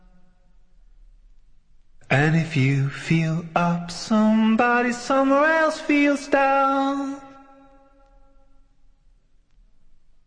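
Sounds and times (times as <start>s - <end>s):
a cappella singing: 2.1s - 7.7s.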